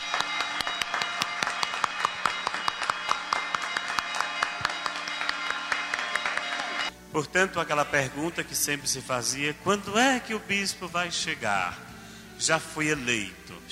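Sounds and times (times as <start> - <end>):
standing audience applauding strongly: 0.0 - 6.9
speech: 7.1 - 13.7.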